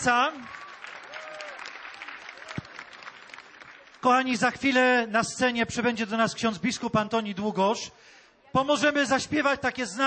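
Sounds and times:
speech: 0:00.0 - 0:00.7, 0:04.0 - 0:10.0
audience applause: 0:00.0 - 0:04.2.

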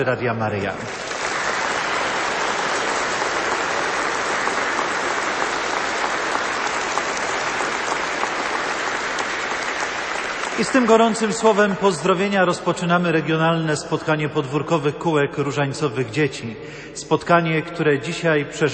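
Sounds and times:
speech: 0:00.0 - 0:01.0, 0:10.6 - 0:18.7
audience applause in a church: 0:00.8 - 0:11.7.

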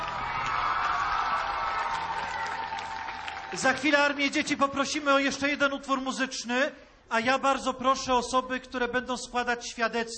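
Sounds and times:
children applauding and cheering: 0:00.0 - 0:04.5
speech: 0:03.5 - 0:10.1.

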